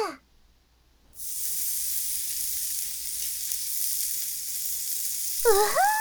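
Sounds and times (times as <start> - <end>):
kalbi skewers sizzling on a grill: 1.2 - 5.9
voice exclamation: 5.4 - 5.9.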